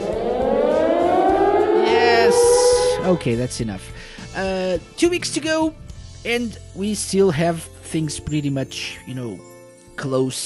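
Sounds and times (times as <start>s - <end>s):
alarm siren sound effect: 0.0s - 3.6s
speech: 3.1s - 10.4s.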